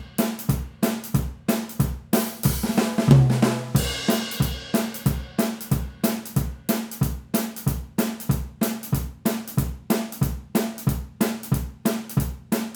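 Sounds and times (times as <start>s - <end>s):
drums through a room microphone: 0.0s - 12.7s.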